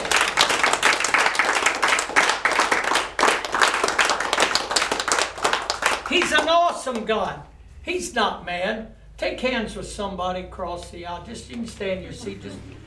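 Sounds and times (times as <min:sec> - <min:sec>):
audience hand clapping: 0:00.0 - 0:07.1
speech: 0:06.2 - 0:12.8.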